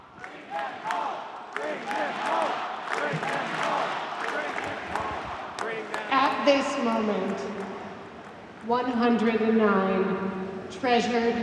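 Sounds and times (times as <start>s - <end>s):
rally audience chanting in unison: 0.0s - 8.2s
scattered claps in the crowd: 0.1s - 8.7s
speech: 6.5s - 7.9s, 8.6s - 11.4s.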